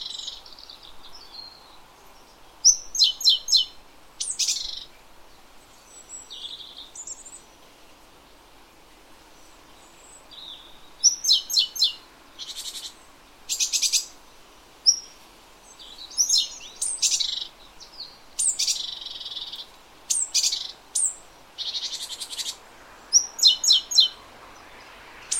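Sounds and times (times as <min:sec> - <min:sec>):
great tit calling: 0:02.6 - 0:04.9, 0:10.4 - 0:14.1, 0:14.9 - 0:24.2, 0:25.2 - 0:25.3.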